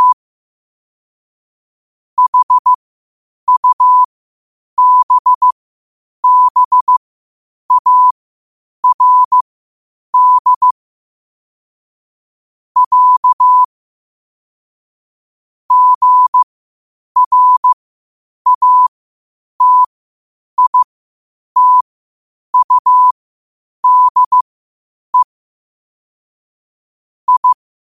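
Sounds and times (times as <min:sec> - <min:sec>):
morse code beeps at 5 wpm: 0:02.2 - 0:02.8, 0:03.5 - 0:04.1, 0:04.8 - 0:05.6, 0:06.2 - 0:07.0, 0:07.7 - 0:08.1, 0:08.8 - 0:09.4, 0:10.2 - 0:10.8, 0:12.8 - 0:13.7, 0:15.7 - 0:16.4, 0:17.2 - 0:17.8, 0:18.5 - 0:18.9, 0:19.6 - 0:19.9, 0:20.6 - 0:20.9, 0:21.6 - 0:21.8, 0:22.6 - 0:23.2, 0:23.8 - 0:24.4, 0:27.3 - 0:27.6.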